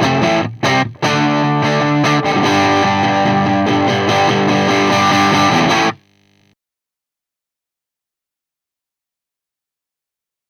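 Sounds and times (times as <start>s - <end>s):
P90 bridge pickup electric guitar crunch through EF86 triode pentode amplifier: 0.0s - 6.5s.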